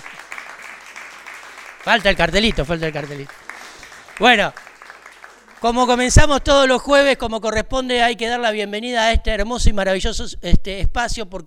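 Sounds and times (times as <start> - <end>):
live audience applause at a school show: 0.0 - 6.7
speech: 1.8 - 3.4, 4.2 - 4.6, 5.6 - 11.4.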